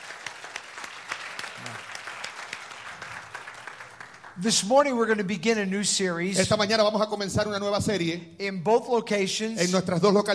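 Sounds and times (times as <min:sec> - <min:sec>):
audience applause: 0:00.0 - 0:04.7
speech: 0:04.4 - 0:10.3.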